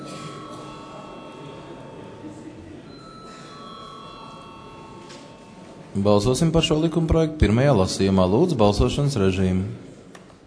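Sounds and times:
parliament bell ringing: 0:00.0 - 0:06.9
low murmur of voices in the chamber: 0:00.0 - 0:10.4
speech: 0:06.0 - 0:09.9.

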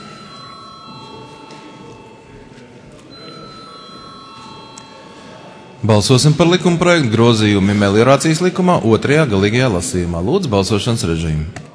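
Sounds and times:
parliament chamber vote bell ringing with high electronic tone: 0:00.0 - 0:08.5
murmur of voices: 0:00.0 - 0:11.7
speech: 0:05.8 - 0:11.7.

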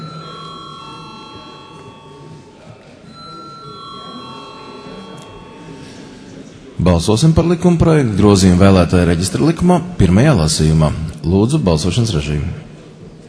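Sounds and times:
bell electronic tones in the Latvian parliament chamber calling members to a vote: 0:00.0 - 0:06.8
low murmur: 0:00.0 - 0:13.2
speech: 0:06.8 - 0:12.7.

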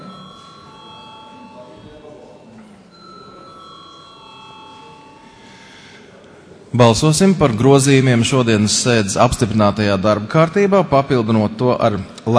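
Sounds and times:
parliament voting electric bell ringing: 0:00.0 - 0:06.1
murmur of voices in a large gathering: 0:00.0 - 0:12.3
speech: 0:06.7 - 0:12.3.

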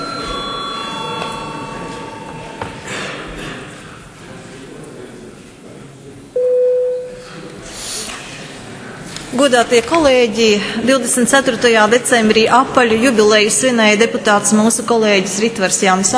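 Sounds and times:
parliament registration bell: 0:00.0 - 0:03.6
speech: 0:09.4 - 0:16.1.

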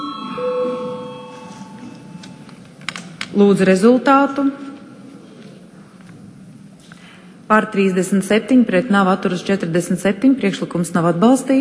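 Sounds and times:
parliament chamber bell before vote: 0:00.0 - 0:02.6
speech: 0:03.4 - 0:04.7, 0:07.5 - 0:11.5.

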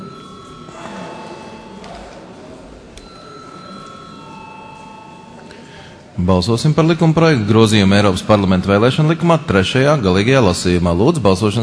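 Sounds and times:
parliament chamber electric bell ringing before a vote: 0:00.0 - 0:05.8
busy murmur of voices: 0:00.0 - 0:11.6
speech: 0:06.2 - 0:11.6.

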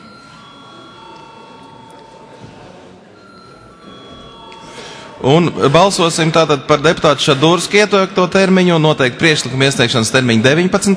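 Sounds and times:
parliament session bell ringing: 0:00.0 - 0:07.7
faint murmur of voices: 0:00.0 - 0:10.9
speech: 0:05.2 - 0:10.9.

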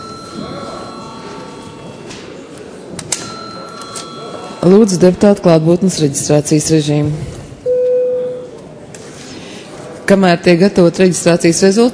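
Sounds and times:
parliament session electric bell ringing: 0:00.0 - 0:01.8, 0:03.2 - 0:04.8
murmur of voices: 0:00.0 - 0:11.9
speech: 0:04.6 - 0:07.4, 0:10.1 - 0:11.9.

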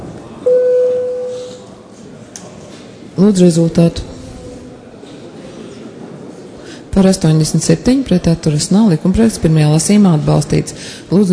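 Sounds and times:
parliament voting bell: 0:00.5 - 0:01.6
speech: 0:03.2 - 0:04.1, 0:06.9 - 0:11.3.

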